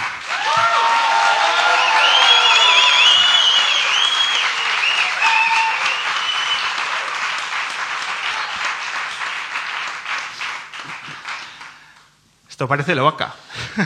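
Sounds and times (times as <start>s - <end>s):
audience applause and cheering: 0.0s - 11.8s
speech: 12.6s - 13.8s.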